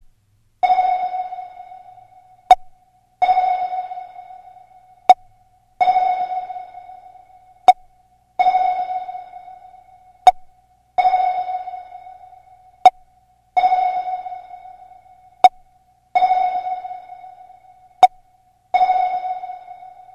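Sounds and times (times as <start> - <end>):
sonar ringtone: 0.6 - 20.1.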